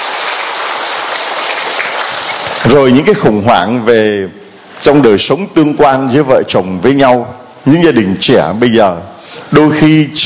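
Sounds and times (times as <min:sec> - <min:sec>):
church congregation applauding to give thanks to God: 0:00.0 - 0:03.1
speech: 0:02.6 - 0:10.2.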